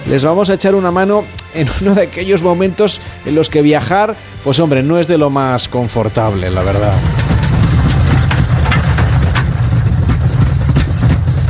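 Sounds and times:
speech: 0:00.1 - 0:07.2
rattles and jolts from turbulence: 0:06.2 - 0:11.4
aircraft engine drone in turbulence: 0:06.3 - 0:11.4.

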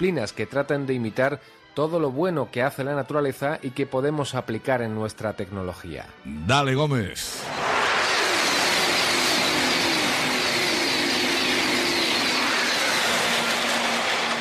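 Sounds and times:
speech: 0:00.0 - 0:07.6
high-speed bullet train passing: 0:07.4 - 0:14.3.

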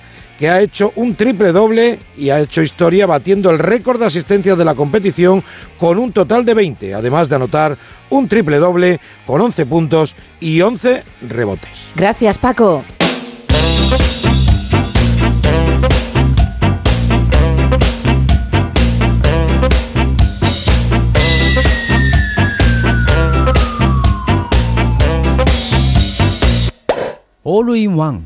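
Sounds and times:
speech: 0:00.4 - 0:13.0, 0:27.5 - 0:28.2
segment theme jingle with a steady punchy beat: 0:13.0 - 0:27.1
siren-like tone: 0:21.2 - 0:26.7.

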